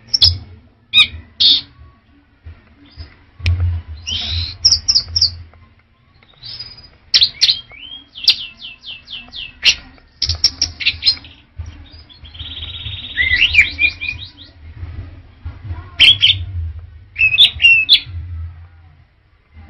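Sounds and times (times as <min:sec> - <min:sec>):
Orange-headed thrush singing: 0:00.0 - 0:19.6
low rumbling background: 0:02.4 - 0:05.6, 0:11.6 - 0:19.6.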